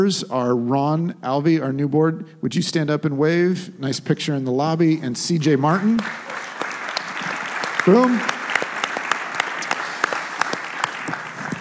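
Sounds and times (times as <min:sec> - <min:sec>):
speech: 0:00.0 - 0:06.3, 0:07.9 - 0:08.4
audience applause: 0:05.7 - 0:11.6.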